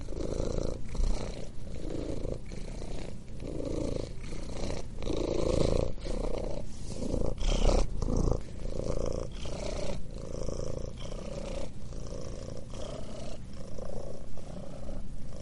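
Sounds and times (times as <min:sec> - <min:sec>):
cat purring: 0:00.0 - 0:15.3.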